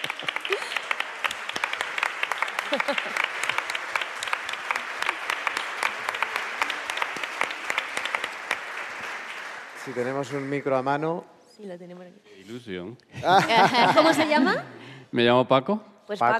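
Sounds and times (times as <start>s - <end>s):
laughter: 0.0s - 1.2s, 2.4s - 3.8s, 13.1s - 14.8s
crowd applauding: 0.0s - 11.2s
speech: 2.7s - 3.3s, 9.9s - 16.3s.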